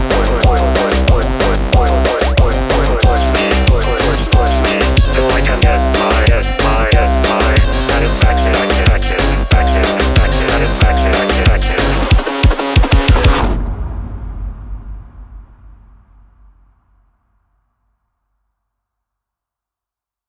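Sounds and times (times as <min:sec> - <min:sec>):
tecnobrega music: 0:00.0 - 0:13.5.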